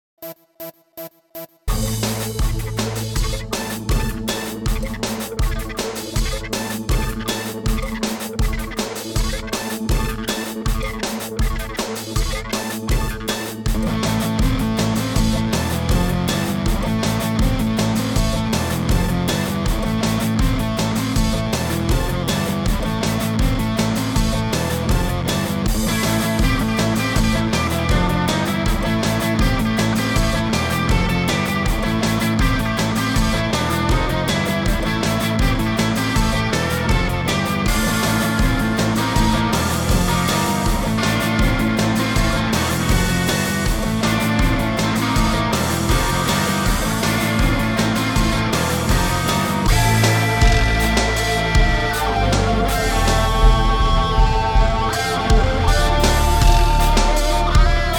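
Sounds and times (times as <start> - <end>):
guitar: 1.7 - 57.9.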